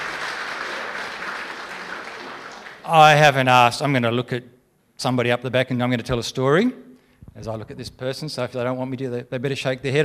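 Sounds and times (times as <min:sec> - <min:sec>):
audience applause: 0:00.0 - 0:03.3
speech: 0:02.9 - 0:06.8, 0:07.4 - 0:10.0.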